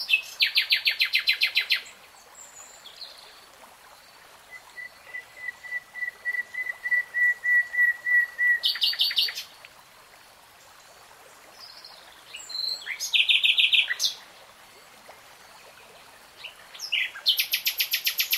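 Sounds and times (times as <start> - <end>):
nightingale song: 0.0 - 3.4, 4.1 - 9.7, 11.5 - 14.4, 15.5 - 18.3.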